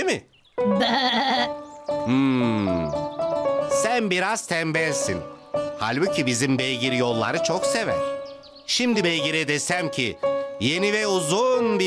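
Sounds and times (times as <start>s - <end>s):
speech: 0.0s - 3.0s, 3.8s - 11.8s
goat bleating: 0.7s - 1.5s.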